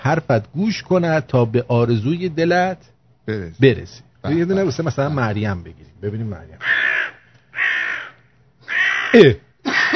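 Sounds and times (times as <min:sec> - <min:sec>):
speech: 0:00.1 - 0:07.9, 0:08.7 - 0:09.4
crow cawing: 0:06.6 - 0:09.9.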